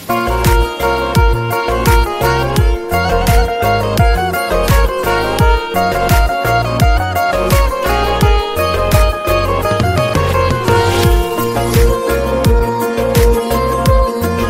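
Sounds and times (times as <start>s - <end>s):
Balochi tone: 0.1s - 14.4s.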